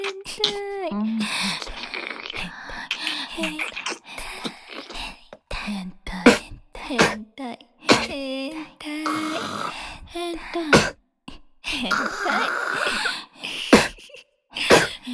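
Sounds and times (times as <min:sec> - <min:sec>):
person spitting: 0:00.0 - 0:05.5, 0:06.2 - 0:07.2, 0:07.9 - 0:08.2, 0:09.1 - 0:09.8, 0:10.7 - 0:11.0, 0:11.9 - 0:15.0.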